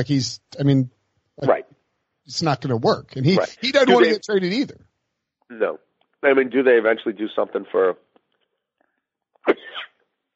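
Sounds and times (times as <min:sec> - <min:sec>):
speech: 0:00.0 - 0:01.6, 0:02.3 - 0:04.8, 0:05.5 - 0:08.0
person sneezing: 0:09.4 - 0:10.0.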